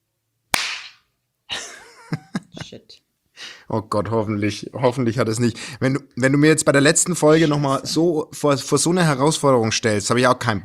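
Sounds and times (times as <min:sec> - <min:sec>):
single hand clap for track sync: 0:00.5 - 0:01.1
speech: 0:02.7 - 0:03.1, 0:03.7 - 0:10.6.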